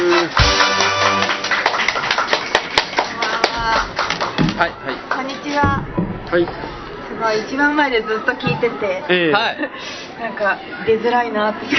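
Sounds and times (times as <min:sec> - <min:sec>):
audience applause: 0:00.0 - 0:05.4
speech: 0:05.6 - 0:11.7.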